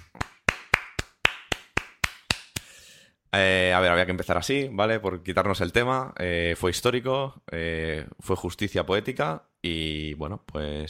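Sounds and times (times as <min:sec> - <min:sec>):
applause: 0:00.0 - 0:02.7
speech: 0:03.3 - 0:10.8.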